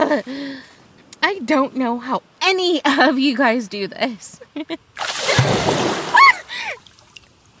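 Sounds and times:
speech: 0.1 - 5.6
water splashing on a person: 5.0 - 7.5.

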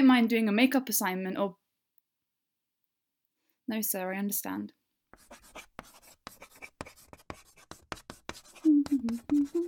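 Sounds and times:
speech: 0.0 - 1.6, 3.7 - 5.7, 8.8 - 9.6
chalk scraping and tapping on a chalkboard: 5.2 - 9.6
person humming a low wavering tune: 8.6 - 9.6.

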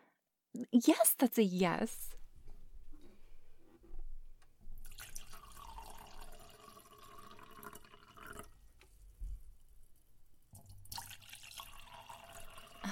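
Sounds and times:
speech: 0.6 - 2.2
wine poured into a glass: 4.8 - 8.6, 10.6 - 12.9.

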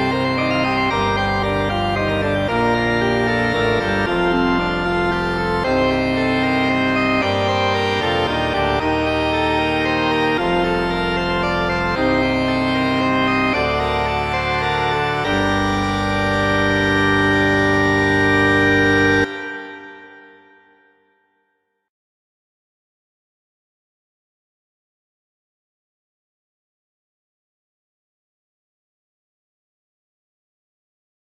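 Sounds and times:
bagpipe overture: 0.0 - 21.4.

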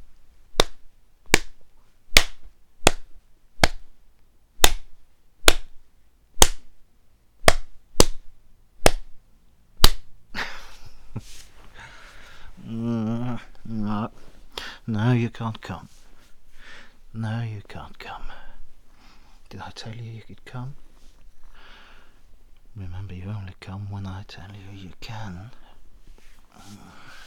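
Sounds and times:
hand slapping bare skin: 0.5 - 4.0, 4.6 - 5.8, 6.4 - 6.8, 7.4 - 9.2, 9.8 - 10.1
person making a drawn-out vocal sound: 12.6 - 14.1
speech: 15.0 - 16.0, 17.2 - 18.4, 19.5 - 20.8, 22.8 - 25.6, 26.6 - 27.2.

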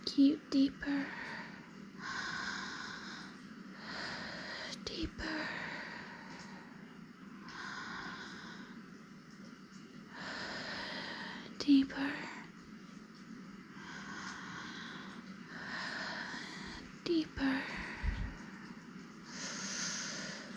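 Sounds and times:
speech: 0.2 - 1.4, 4.9 - 5.7
slow breathing: 1.0 - 8.9, 10.1 - 11.6, 13.6 - 20.5.

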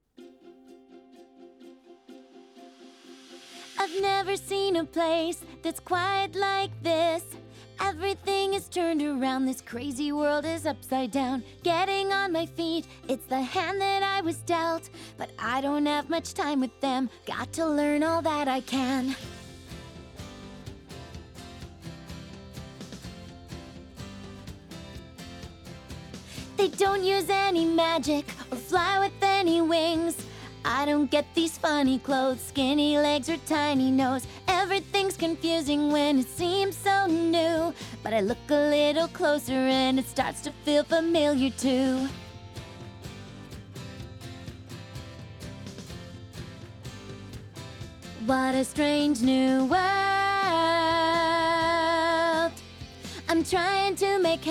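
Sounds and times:
a cappella singing: 3.6 - 19.2, 26.6 - 42.1, 48.2 - 54.4.

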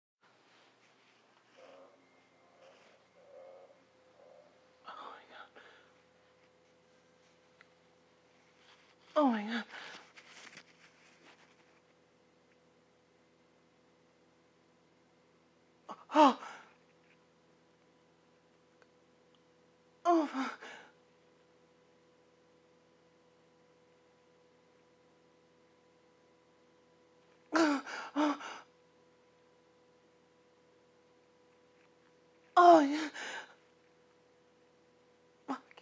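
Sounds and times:
person moaning: 15.9 - 16.7, 20.1 - 20.9, 27.5 - 28.7, 32.6 - 33.4.

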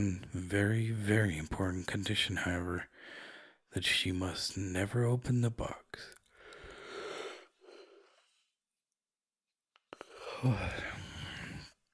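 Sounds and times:
speech: 0.0 - 6.2, 10.4 - 11.0
person yawning: 10.2 - 11.6.

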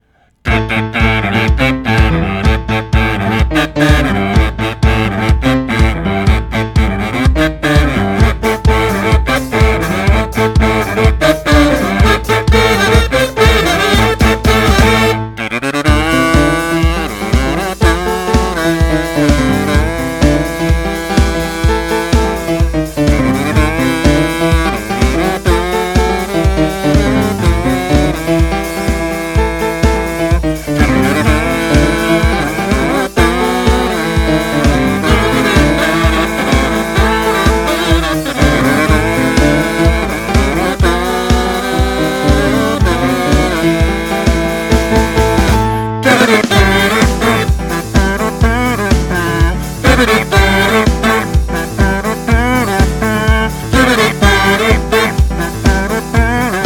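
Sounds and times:
kazoo: 0.0 - 56.6
piano: 0.0 - 56.6.

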